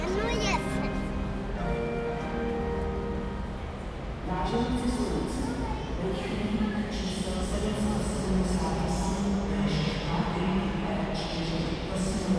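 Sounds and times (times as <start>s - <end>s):
child: 0.0s - 1.1s
public address announcement: 0.0s - 12.3s
train departing: 0.0s - 12.3s.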